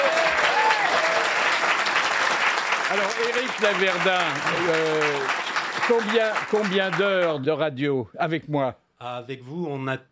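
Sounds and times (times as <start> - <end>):
audience applause: 0.0 - 7.4
speech: 3.0 - 10.0.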